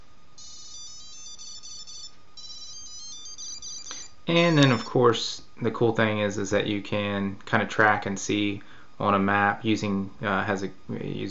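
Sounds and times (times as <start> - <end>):
Tile tracker app playing a little tune: 0.4 - 5.0
speech: 4.3 - 11.3.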